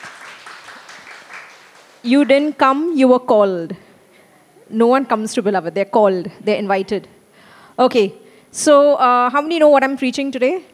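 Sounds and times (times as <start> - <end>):
audience clapping for newcomers: 0.0 - 2.5
speech: 2.0 - 3.8, 4.7 - 7.2, 7.8 - 10.7.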